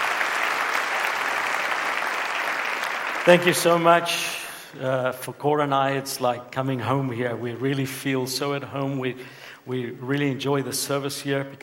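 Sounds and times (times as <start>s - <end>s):
church congregation applause welcoming a guest speaker: 0.0s - 4.3s
speech: 3.2s - 11.6s.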